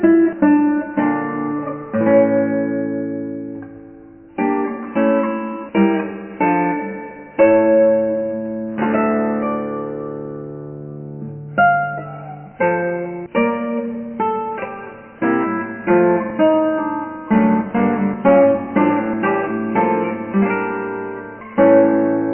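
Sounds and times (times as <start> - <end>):
guitar: 0.0 - 22.3.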